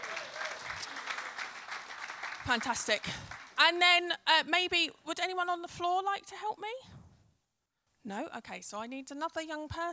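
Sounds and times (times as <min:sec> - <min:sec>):
crowd applauding: 0:00.0 - 0:03.6
speech: 0:02.5 - 0:07.0, 0:08.0 - 0:09.9.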